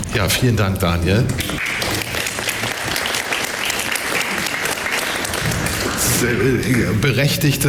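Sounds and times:
speech: 0:00.2 - 0:01.7, 0:06.2 - 0:07.6
audience applause: 0:01.4 - 0:07.4.

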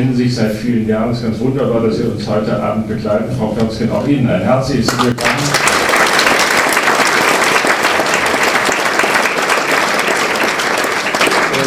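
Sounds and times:
speech: 0:00.0 - 0:05.6
audience applause: 0:04.9 - 0:11.6.

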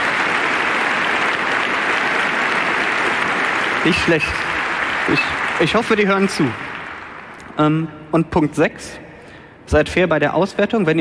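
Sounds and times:
applause: 0:00.0 - 0:07.6
speech: 0:03.8 - 0:06.7, 0:07.6 - 0:09.0, 0:09.7 - 0:10.9.

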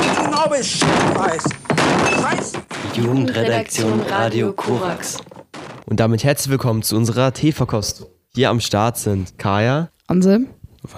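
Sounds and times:
table being smashed: 0:00.0 - 0:06.0
loud talking voices: 0:00.0 - 0:06.1
speech: 0:00.4 - 0:05.3, 0:05.9 - 0:10.9.

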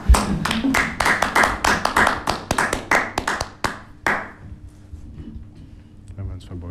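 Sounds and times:
hand clapping: 0:00.0 - 0:04.4.

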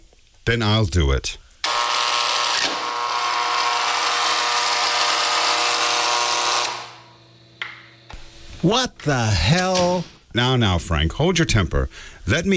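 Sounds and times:
speech: 0:00.5 - 0:01.4, 0:08.6 - 0:12.5
door buzzer buzzing: 0:01.6 - 0:07.4.

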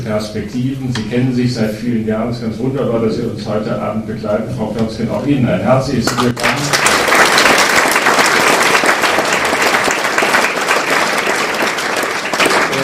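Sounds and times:
speech: 0:00.0 - 0:06.8
audience applause: 0:06.1 - 0:12.8.

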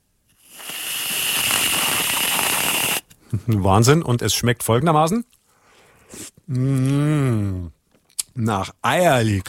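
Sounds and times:
whipped cream sprayed from a can: 0:00.4 - 0:03.0
speech: 0:03.3 - 0:05.3, 0:06.5 - 0:07.8, 0:08.4 - 0:09.4.

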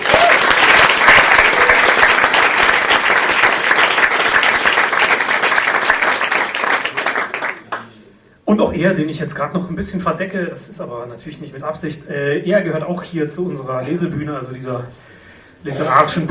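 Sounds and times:
audience applause: 0:00.0 - 0:07.8
speech: 0:08.5 - 0:16.2.

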